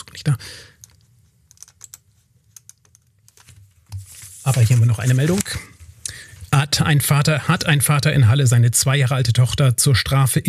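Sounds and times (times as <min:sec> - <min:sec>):
low hum: 0:00.0 - 0:10.4
speech: 0:00.2 - 0:00.7, 0:04.5 - 0:05.4, 0:06.8 - 0:10.4
computer keyboard typing: 0:00.8 - 0:04.0.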